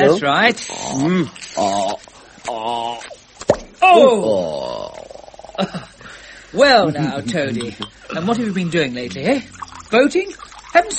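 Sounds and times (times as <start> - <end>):
speech: 0.0 - 3.1, 3.9 - 4.6, 6.6 - 10.9
wordless voiced murmurs and sliding vocal sounds: 0.1 - 3.2, 3.8 - 5.8
cork popping out of a bottle: 7.6 - 10.9.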